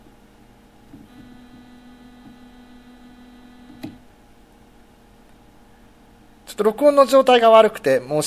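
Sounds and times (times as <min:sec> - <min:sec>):
low mains hum: 0:00.0 - 0:08.2
C note test tone at 20 decibels: 0:01.0 - 0:04.1
click: 0:03.7 - 0:04.0
speech: 0:06.6 - 0:08.2.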